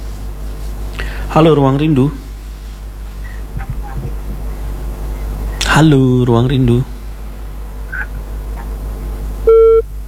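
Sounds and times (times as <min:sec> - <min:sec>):
speech: 0:01.3 - 0:02.2, 0:05.8 - 0:07.0
phone line disconnect tone beeps after a dropped call: 0:09.5 - 0:09.8.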